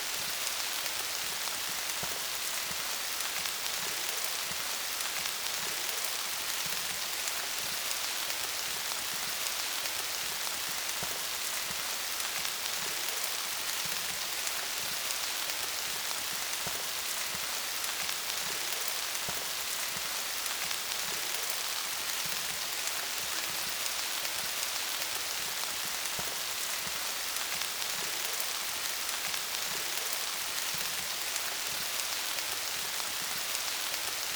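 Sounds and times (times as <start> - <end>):
rain: 0.0 - 34.3.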